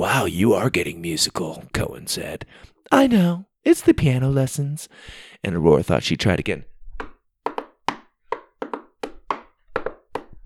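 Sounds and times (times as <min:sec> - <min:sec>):
speech: 0:00.1 - 0:06.7
knocking on a door: 0:07.0 - 0:10.4.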